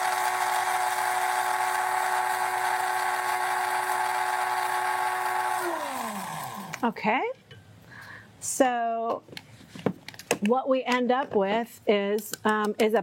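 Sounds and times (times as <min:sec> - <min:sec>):
coffee grinder grinding seeds: 0:00.0 - 0:06.9
speech: 0:06.8 - 0:07.4, 0:08.4 - 0:09.5, 0:10.4 - 0:13.0.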